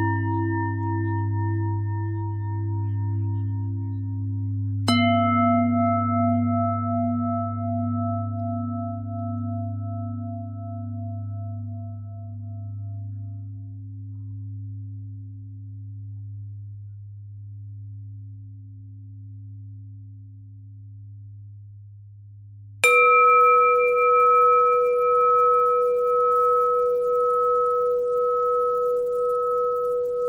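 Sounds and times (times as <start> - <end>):
bell: 0.0 - 16.3, 22.8 - 30.2.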